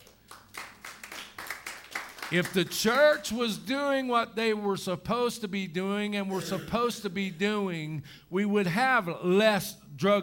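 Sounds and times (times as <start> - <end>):
audience hand clapping: 0.0 - 3.2
speech: 2.3 - 10.2.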